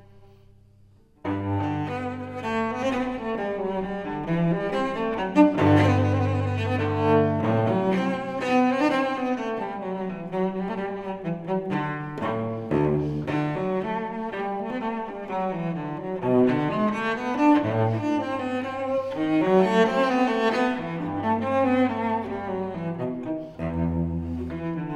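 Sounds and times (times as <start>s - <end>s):
solo cello piece in G: 0.0s - 24.9s.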